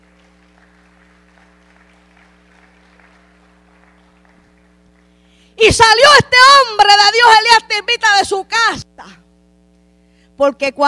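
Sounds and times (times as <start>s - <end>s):
audience applauding: 0.0s - 5.4s
speech: 5.6s - 9.2s, 10.4s - 10.8s.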